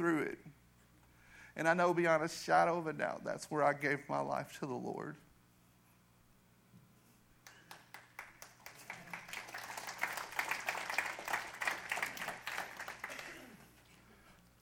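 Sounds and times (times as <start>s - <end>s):
speech: 0.0s - 0.6s, 1.6s - 5.2s
audience clapping: 7.4s - 13.8s.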